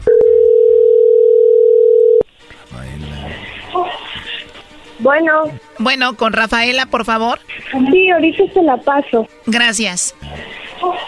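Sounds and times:
telephone ringing tone: 0.0 - 2.3
speech: 5.1 - 11.0.

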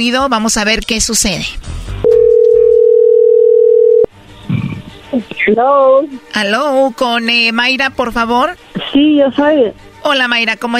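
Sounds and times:
speech: 0.0 - 1.8, 5.2 - 10.7
telephone dial tone: 2.1 - 4.1.

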